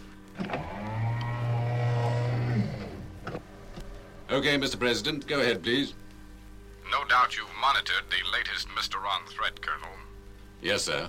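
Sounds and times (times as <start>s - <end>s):
sliding sound doors closing: 0.4s - 4.2s
speech: 4.3s - 6.0s, 7.1s - 10.0s, 10.6s - 11.0s.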